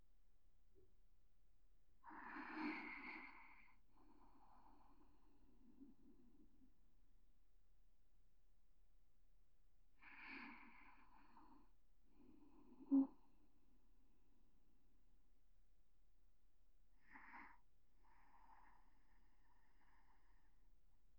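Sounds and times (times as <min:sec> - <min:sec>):
person breathing in sleep: 0:02.0 - 0:06.1, 0:10.0 - 0:13.2, 0:17.0 - 0:20.7.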